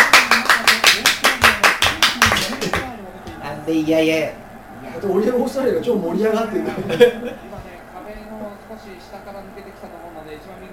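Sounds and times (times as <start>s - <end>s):
hands clapping: 0.0s - 2.9s
speech: 3.7s - 7.5s, 8.1s - 10.7s
laughter: 6.5s - 7.6s.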